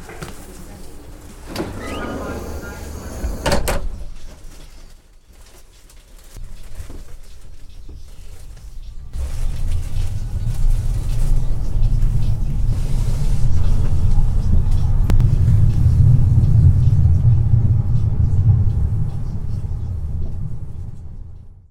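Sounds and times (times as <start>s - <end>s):
S-Bahn commuter train: 0.0s - 4.2s, 9.1s - 21.6s.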